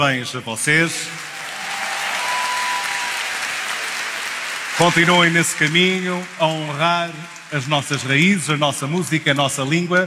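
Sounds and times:
speech: 0:00.0 - 0:01.3, 0:04.8 - 0:10.0
audience applause: 0:00.9 - 0:08.6.

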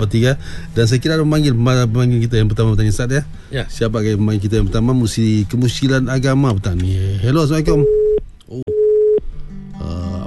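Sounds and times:
speech: 0:00.0 - 0:08.7
lower humming tones: 0:00.0 - 0:10.2
telephone tone after a caller's line cuts off: 0:07.8 - 0:09.2.

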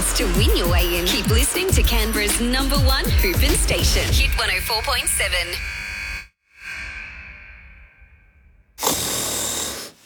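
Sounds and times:
speech: 0:00.2 - 0:05.8
person snoring: 0:08.8 - 0:10.0.

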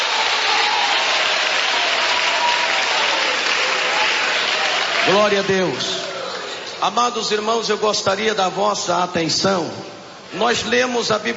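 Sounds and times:
audience clapping hands: 0:00.0 - 0:06.7
speech: 0:05.0 - 0:06.0, 0:06.8 - 0:11.3.

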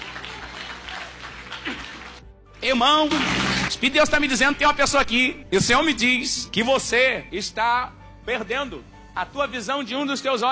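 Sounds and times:
church congregation clapping for Jesus: 0:00.0 - 0:02.3, 0:03.0 - 0:03.8
speech: 0:02.6 - 0:10.5.

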